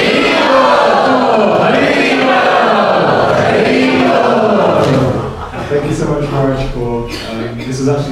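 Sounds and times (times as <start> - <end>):
audience applause: 0.0 - 5.8
laughter: 0.0 - 8.0.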